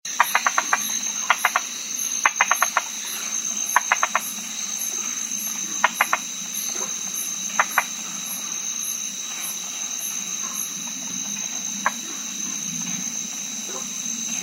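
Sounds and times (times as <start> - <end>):
white-lipped tree frog giving rapid clicking calls: 0.1 - 8.0, 11.8 - 12.1.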